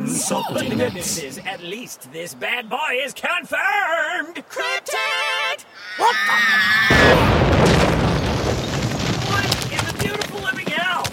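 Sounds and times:
speech: 0.2s - 7.9s
explosion: 6.9s - 10.4s.

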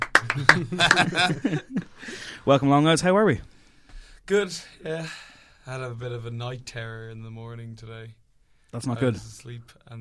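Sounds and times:
two people clapping: 0.0s - 1.6s
laughter: 0.1s - 2.0s
speech: 0.4s - 3.5s, 4.3s - 9.9s.

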